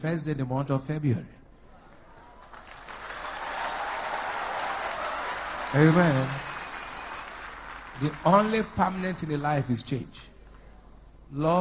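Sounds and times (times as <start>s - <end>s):
speech: 0.0s - 1.4s, 5.7s - 6.5s, 8.0s - 10.3s, 11.3s - 11.5s
crowd applause: 2.1s - 9.5s.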